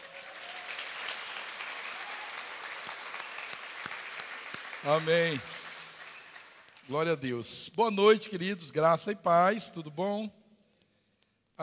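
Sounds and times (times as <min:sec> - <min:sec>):
large audience applauding loudly: 0:00.0 - 0:06.9
speech: 0:04.8 - 0:05.6, 0:06.9 - 0:10.4.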